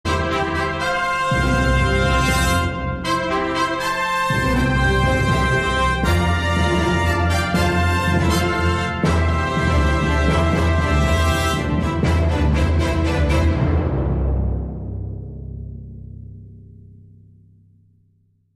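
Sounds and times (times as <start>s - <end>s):
fanfare: 0.1s - 14.2s.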